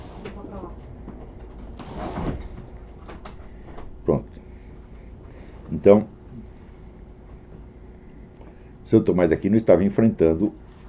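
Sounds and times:
door being opened for a dog: 0:01.2 - 0:04.2
speech: 0:05.8 - 0:06.2, 0:08.9 - 0:10.6.

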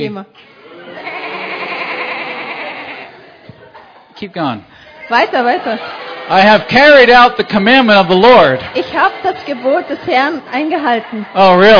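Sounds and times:
speech: 0:00.0 - 0:01.1, 0:04.2 - 0:11.7
laughter: 0:00.4 - 0:11.7
women imitating sheep bleating: 0:00.5 - 0:03.3.

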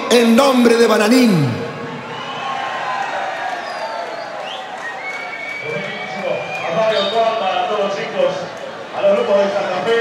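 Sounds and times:
speech: 0:00.1 - 0:01.7
crowd applauding and cheering for Santa Fe cumbia groups: 0:01.8 - 0:09.9
shrill whistles: 0:03.4 - 0:07.4.

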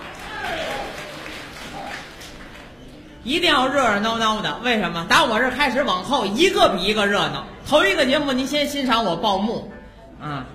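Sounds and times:
sparse audience applause: 0:00.0 - 0:02.8
speech: 0:03.2 - 0:10.5.

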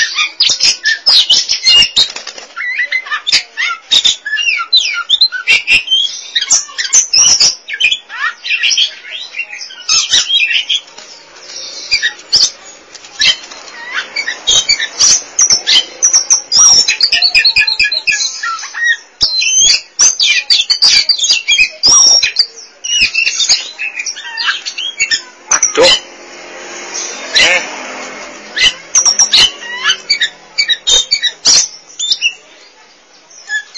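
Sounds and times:
Oriental magpie-robin singing: 0:00.0 - 0:26.1, 0:28.5 - 0:33.7.

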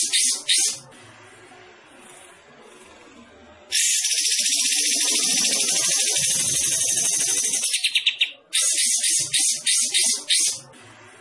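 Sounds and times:
bulbul song: 0:00.0 - 0:00.8, 0:03.7 - 0:10.6.

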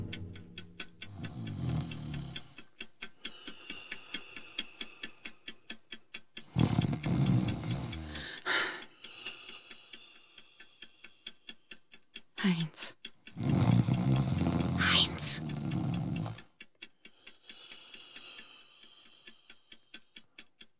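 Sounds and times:
snoring: 0:01.1 - 0:02.6, 0:06.5 - 0:08.4, 0:13.3 - 0:16.5.

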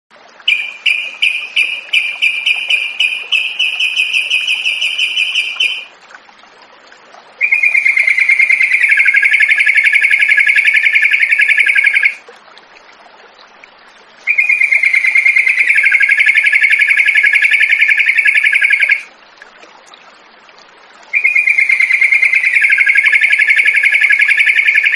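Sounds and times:
yellow-vented bulbul singing: 0:00.5 - 0:05.9, 0:07.4 - 0:12.2, 0:14.3 - 0:19.1, 0:21.2 - 0:24.9.

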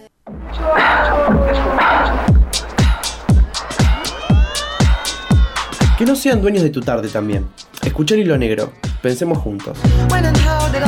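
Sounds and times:
dogs barking: 0:00.4 - 0:06.0
speech: 0:06.1 - 0:10.8.

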